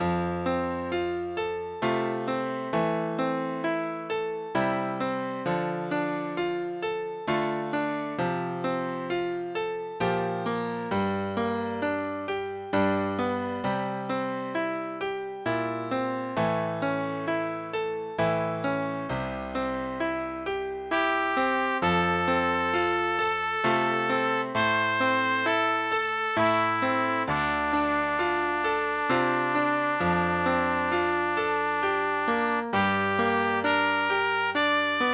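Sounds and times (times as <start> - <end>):
piano: 0.0 - 35.1
trumpet: 20.9 - 35.1.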